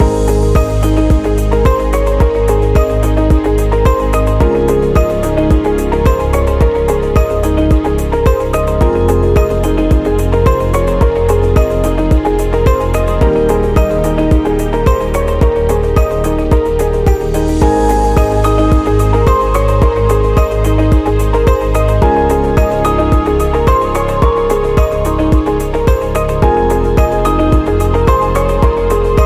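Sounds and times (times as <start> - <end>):
inspiring corporate music loop: 0.0 - 29.2.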